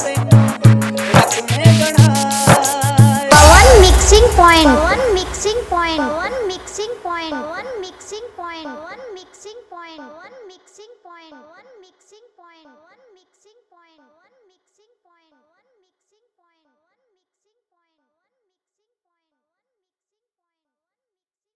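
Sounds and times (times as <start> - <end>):
Hindi romantic remix song: 0.0 - 8.9.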